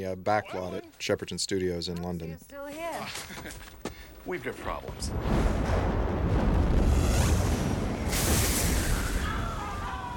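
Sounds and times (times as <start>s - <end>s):
speech: 0.0s - 7.0s
laughter: 3.1s - 3.7s
fiery explosions from a huge mechanical flame-ball film effect on Cairo streets: 5.0s - 10.1s.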